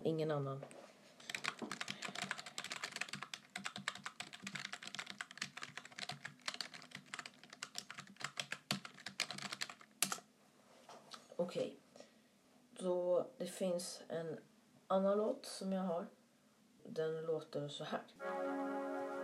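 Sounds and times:
speech: 0:00.0 - 0:00.8, 0:11.4 - 0:11.8, 0:12.8 - 0:16.2, 0:16.8 - 0:18.6
typing on a computer keyboard: 0:01.2 - 0:10.2.

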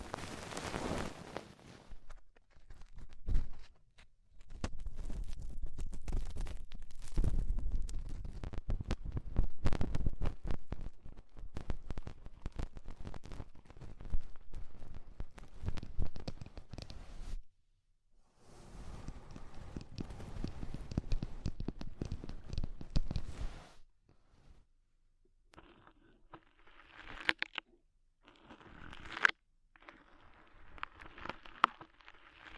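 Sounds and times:
crackling and scratching of ear cleaning with rhinestones and clay: 0:00.0 - 0:17.5, 0:18.4 - 0:32.5.

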